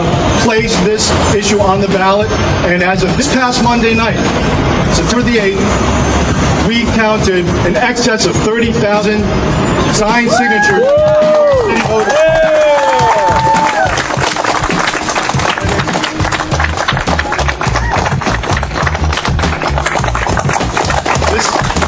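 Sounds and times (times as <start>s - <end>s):
speech: 0.5s - 12.6s
audience applause: 10.8s - 21.8s.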